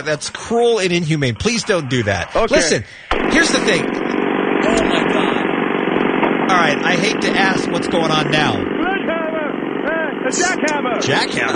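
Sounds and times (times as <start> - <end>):
speech: 0.0 - 4.0, 4.6 - 5.2, 6.5 - 8.7, 10.3 - 11.5
voice imitating a jackhammer: 0.9 - 3.9, 4.6 - 5.4, 6.5 - 11.5.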